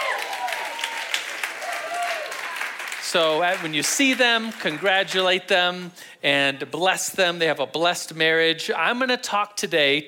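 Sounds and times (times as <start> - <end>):
audience applause for a couple's 50th wedding anniversary: 0.0 - 5.2
speech: 3.1 - 10.0.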